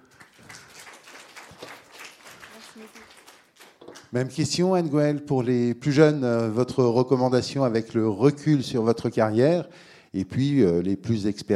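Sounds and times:
audience applause: 0:00.0 - 0:04.1
speech: 0:04.1 - 0:11.5.

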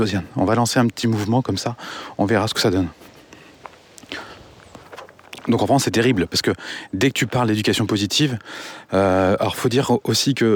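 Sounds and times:
speech: 0:00.0 - 0:03.1, 0:05.5 - 0:10.5
soft footsteps of a person walking: 0:00.8 - 0:08.4.

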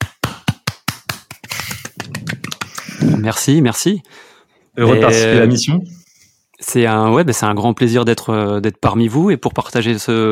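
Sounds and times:
several people clapping: 0:00.0 - 0:03.1
speech: 0:03.2 - 0:06.0, 0:06.6 - 0:10.3.

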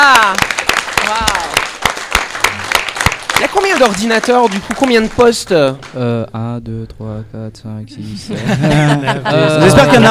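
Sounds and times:
audience clapping: 0:00.0 - 0:06.0
speech: 0:03.8 - 0:10.1
laughter: 0:08.0 - 0:10.1.

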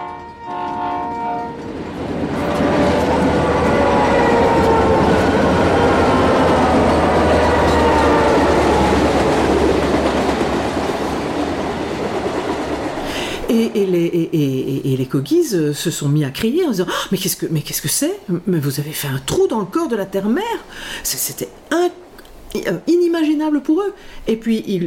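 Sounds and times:
high-speed TGV train passing through a tunnel dug in the mountain: 0:00.0 - 0:24.8
speech: 0:15.1 - 0:22.0, 0:22.6 - 0:24.8.

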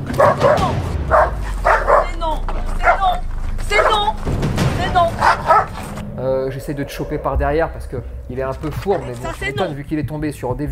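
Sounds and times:
Belgian Malinois dog barking: 0:00.0 - 0:02.2, 0:02.8 - 0:04.2, 0:05.2 - 0:05.8
low rumble: 0:00.6 - 0:10.5
speech: 0:06.7 - 0:10.7.

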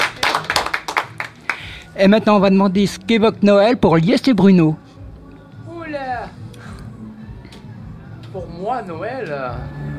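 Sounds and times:
people clapping: 0:00.0 - 0:01.8
speech: 0:02.0 - 0:04.8, 0:08.4 - 0:09.9.

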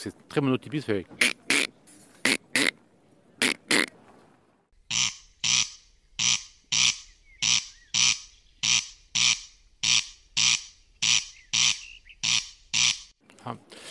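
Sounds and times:
speech: 0:00.0 - 0:01.3
corncrake two-syllable song: 0:01.2 - 0:02.8, 0:03.4 - 0:03.9, 0:04.8 - 0:13.2.

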